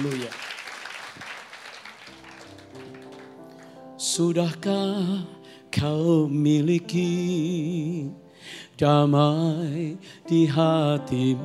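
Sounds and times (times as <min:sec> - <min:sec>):
speech: 0:00.0 - 0:00.5, 0:04.2 - 0:11.4
audience applause: 0:00.0 - 0:03.8.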